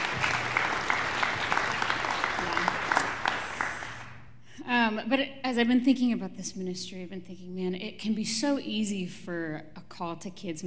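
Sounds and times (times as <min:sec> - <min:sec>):
audience applause: 0:00.0 - 0:04.2
speech: 0:04.9 - 0:10.6.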